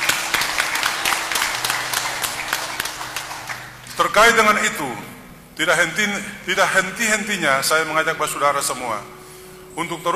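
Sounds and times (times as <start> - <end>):
audience applause: 0.0 - 3.9
speech: 4.0 - 9.2, 9.8 - 10.1.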